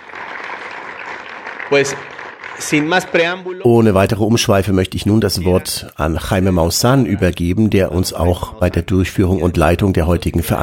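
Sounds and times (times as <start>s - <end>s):
audience applause: 0.0s - 3.5s
speech: 1.7s - 10.6s.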